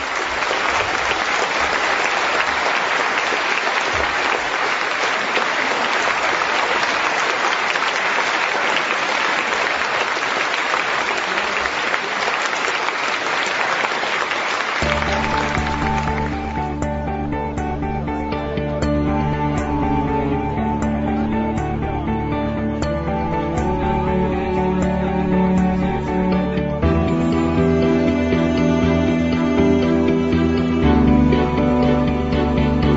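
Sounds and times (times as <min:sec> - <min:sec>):
large audience clapping: 0:00.0 - 0:26.8
sustained musical tones: 0:14.8 - 0:32.9.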